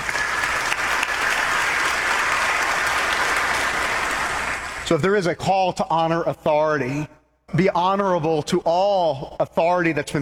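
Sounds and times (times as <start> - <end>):
audience applause: 0.0 - 4.8
speech: 4.9 - 10.1.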